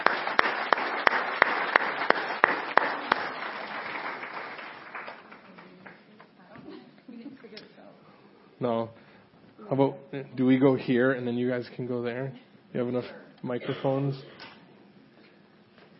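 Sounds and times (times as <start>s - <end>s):
audience applause: 0.0s - 6.1s
speech: 8.6s - 9.0s, 9.7s - 14.4s.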